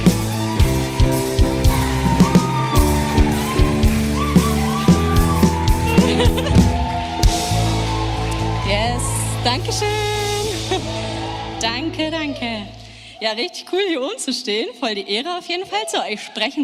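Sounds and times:
audience cheering and applause: 0.0 - 13.5
laughter: 4.2 - 7.2, 10.0 - 11.5
speech: 13.2 - 16.6.

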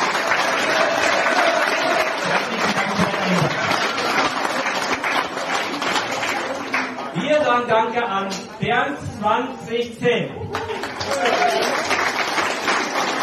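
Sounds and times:
crowd applauding: 0.0 - 7.2, 10.5 - 13.2
speech: 7.6 - 10.6.

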